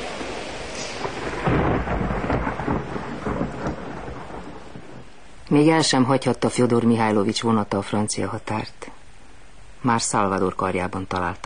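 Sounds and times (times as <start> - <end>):
thunder rumbling: 0.0 - 8.2
heavy rain pouring: 0.0 - 11.4
speech: 5.5 - 8.9, 9.8 - 11.4.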